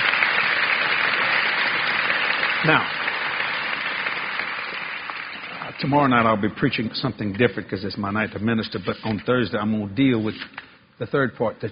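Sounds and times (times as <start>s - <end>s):
congregation clapping hands during a church service: 0.0s - 6.8s
speech: 2.6s - 3.0s, 5.8s - 11.7s.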